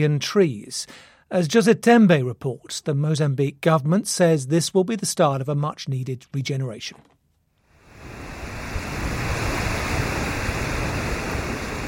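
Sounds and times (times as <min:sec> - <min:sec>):
speech: 0:00.0 - 0:07.1
strong wind blowing off the Indian Ocean onto Mozambique's coast: 0:07.8 - 0:11.8.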